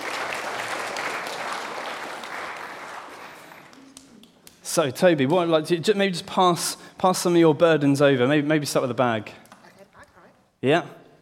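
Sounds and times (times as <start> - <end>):
audience applause for volunteers: 0.0 - 4.4
speech: 4.8 - 9.4, 10.6 - 11.0.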